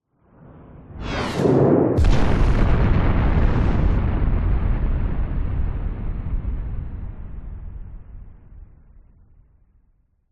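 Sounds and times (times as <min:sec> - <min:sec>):
missile explosion: 0:00.9 - 0:09.6
incoming missile whizzing by: 0:01.0 - 0:02.6.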